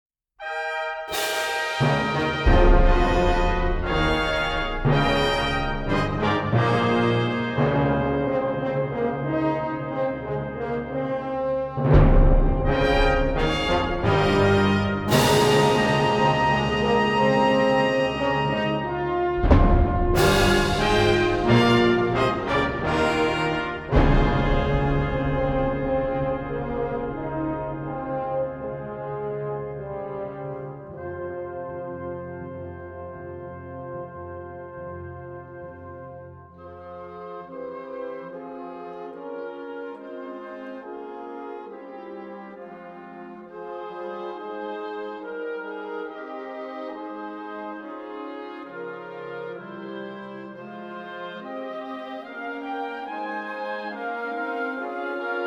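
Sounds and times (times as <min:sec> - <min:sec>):
fanfare chorale: 0:00.4 - 0:55.4.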